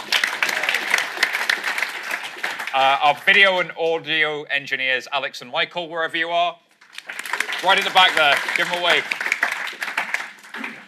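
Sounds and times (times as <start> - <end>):
audience round of applause: 0.0 - 3.8, 6.8 - 10.8
speech: 2.8 - 6.6, 7.6 - 9.2.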